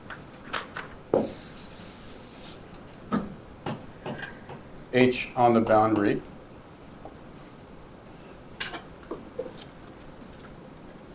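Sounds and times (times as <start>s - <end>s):
chalk or marker scratching on a board during a physics lecture: 1.2s - 2.6s
speech: 4.9s - 6.3s.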